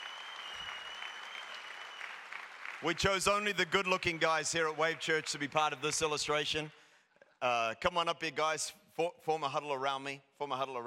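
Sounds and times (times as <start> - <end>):
audience applause: 0.0 - 5.5
speech: 2.8 - 6.8, 7.4 - 10.8.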